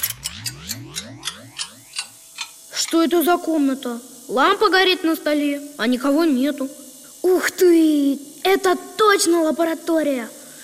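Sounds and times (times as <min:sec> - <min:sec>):
antique clock mechanism ratcheting: 0:00.0 - 0:03.2
rising mechanical whirr of an antique clock mechanism: 0:00.0 - 0:04.7
speech: 0:02.9 - 0:10.4.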